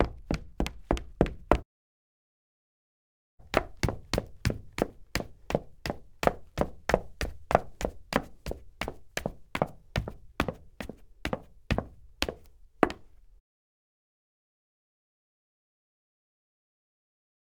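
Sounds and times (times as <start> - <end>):
foley footsteps on wood parquet: 3.4 - 13.1.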